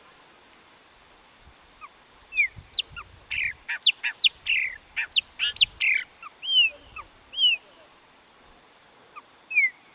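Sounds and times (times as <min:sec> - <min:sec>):
Chopi blackbird singing whistled and slurred notes: 0:02.4 - 0:07.6, 0:09.5 - 0:09.8.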